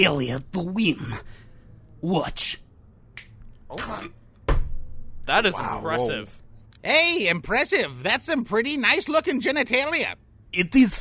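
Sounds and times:
speech: 0:00.0 - 0:01.4, 0:02.0 - 0:02.6, 0:03.7 - 0:04.2, 0:05.3 - 0:10.9
sharp finger snaps: 0:03.1 - 0:03.5.

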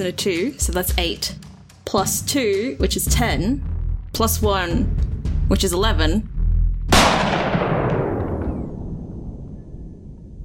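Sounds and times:
speech: 0:00.0 - 0:06.3
gunshot sound effect: 0:06.9 - 0:10.4.

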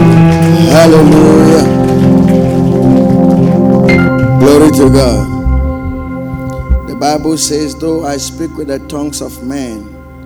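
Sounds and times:
audience clapping: 0:00.0 - 0:06.8
speech: 0:00.9 - 0:01.7, 0:04.8 - 0:05.3, 0:07.0 - 0:09.9.

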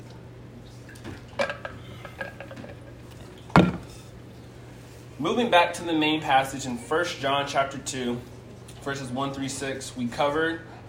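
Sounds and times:
person drinking water: 0:00.8 - 0:04.2
speech: 0:05.2 - 0:10.8.

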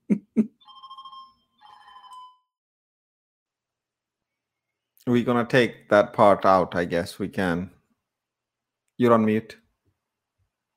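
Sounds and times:
telephone ringing: 0:00.6 - 0:02.6
speech: 0:05.1 - 0:07.8, 0:09.0 - 0:09.6.

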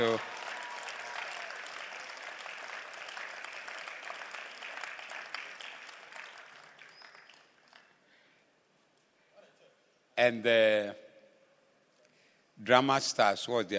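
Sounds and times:
crowd applauding: 0:00.0 - 0:08.0
speech: 0:00.1 - 0:00.3, 0:10.2 - 0:11.0, 0:12.6 - 0:13.7.

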